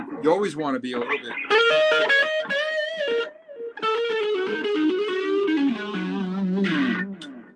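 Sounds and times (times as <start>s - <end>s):
electric guitar through small amp with delay: 0.0s - 7.5s
speech: 0.2s - 3.2s.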